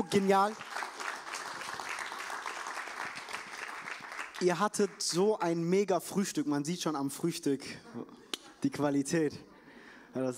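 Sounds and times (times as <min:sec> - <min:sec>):
speech: 0:00.0 - 0:00.7, 0:04.4 - 0:09.5, 0:10.1 - 0:10.3
audience applause: 0:00.0 - 0:05.0.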